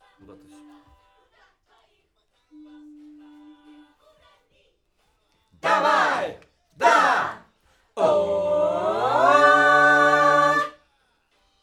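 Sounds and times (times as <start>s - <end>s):
backing vocals on AKG microphone: 5.6s - 7.4s, 8.0s - 10.8s.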